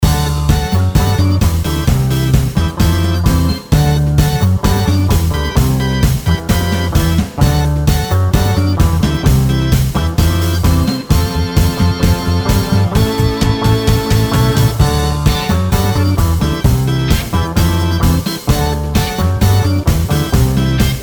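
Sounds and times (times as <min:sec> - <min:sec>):
organ: 0:00.0 - 0:21.0.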